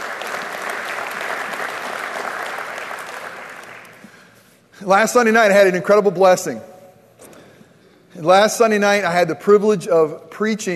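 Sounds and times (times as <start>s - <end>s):
audience applause: 0.0s - 4.0s
speech: 4.8s - 6.7s, 8.2s - 10.7s.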